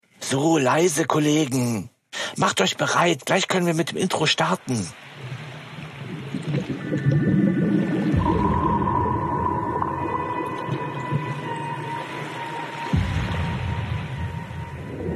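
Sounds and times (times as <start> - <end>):
speech: 0.3 - 5.0
murky underwater ambience with gurgling: 4.9 - 15.1
dark brooding suspense music: 6.9 - 15.1.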